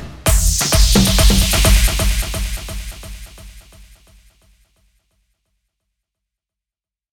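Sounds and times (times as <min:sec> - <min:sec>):
130 bpm music track: 0:00.3 - 0:04.2.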